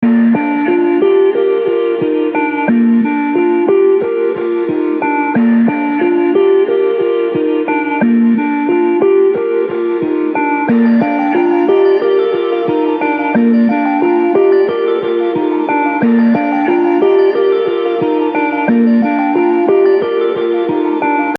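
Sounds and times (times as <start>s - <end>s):
music samples in B flat: 0.0s - 21.3s.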